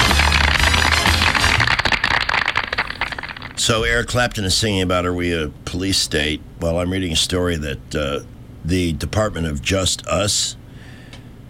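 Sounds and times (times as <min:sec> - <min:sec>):
applause from many hands: 0:00.0 - 0:03.6
speech: 0:03.6 - 0:10.6.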